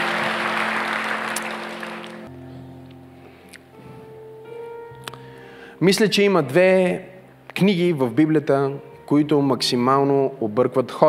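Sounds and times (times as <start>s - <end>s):
audience applause: 0.0s - 2.3s
sustained keyboard chords: 0.0s - 11.0s
speech: 5.8s - 11.0s.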